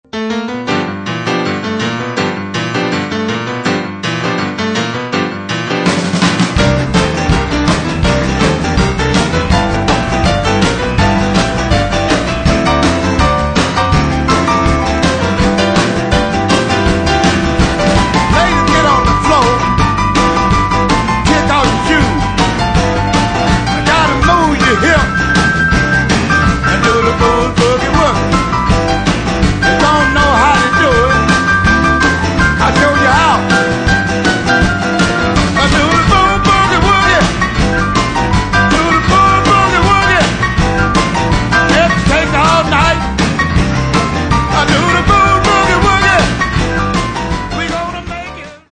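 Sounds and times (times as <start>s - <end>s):
boogie woogie music: 0.0s - 48.7s.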